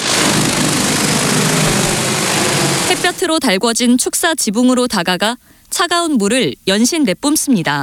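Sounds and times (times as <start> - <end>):
large drone taking off: 0.0 - 3.3
speech: 3.0 - 7.8.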